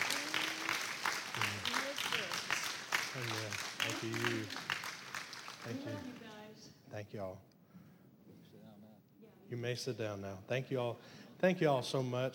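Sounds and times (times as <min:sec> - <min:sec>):
crowd applauding: 0:00.0 - 0:06.5
speech: 0:03.1 - 0:04.7, 0:05.6 - 0:06.3, 0:06.9 - 0:07.5, 0:09.5 - 0:12.3.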